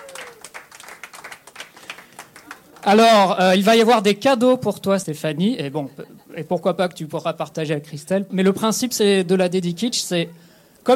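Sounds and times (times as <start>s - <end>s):
radio show audience clapping: 0.0s - 3.2s
speech: 2.8s - 10.9s.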